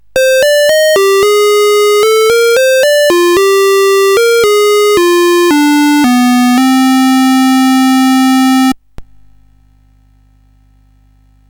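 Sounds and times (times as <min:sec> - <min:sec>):
SID chiptune music on CSG8580R5 chip: 0:00.1 - 0:08.8.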